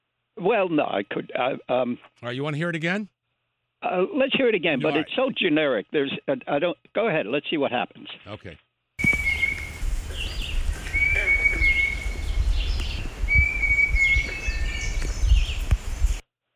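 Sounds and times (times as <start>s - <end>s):
speech: 0.4s - 3.2s, 3.8s - 8.6s
young hawk whistling call: 9.0s - 15.0s
songbird warbling: 9.0s - 15.7s.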